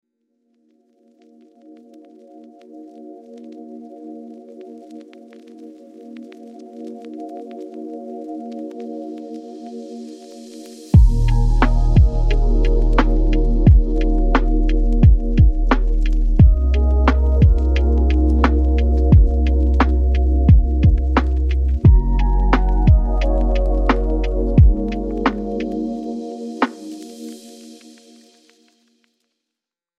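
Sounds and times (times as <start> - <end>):
digital ambient sound: 9.9 - 28.5.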